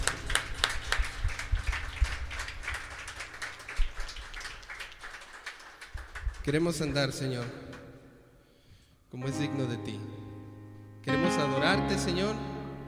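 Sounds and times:
audience applause: 0.0 - 6.7
speech: 6.5 - 7.6, 9.2 - 10.2, 11.1 - 12.4.

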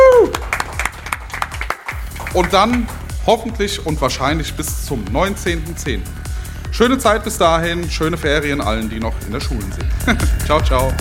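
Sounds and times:
person whooping: 0.0 - 0.7
audience applause for the DJs: 0.0 - 3.1
speech: 2.4 - 10.9
laughter: 9.7 - 10.9.

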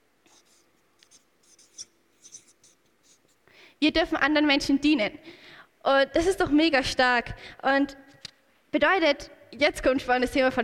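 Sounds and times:
handwriting a word: 0.3 - 3.4
speech: 3.8 - 8.0, 8.7 - 10.6.

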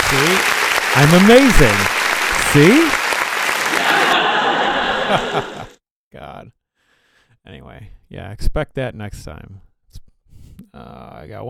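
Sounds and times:
canned applause sound effect from software: 0.0 - 5.7
speech: 0.1 - 3.0, 5.1 - 6.6, 7.4 - 10.0, 10.6 - 11.4
laughter: 1.5 - 5.8.

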